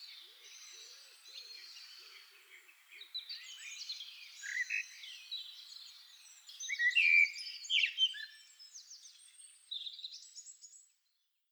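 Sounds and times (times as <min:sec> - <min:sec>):
common blackbird song, Turdus merula: 0:00.0 - 0:11.0.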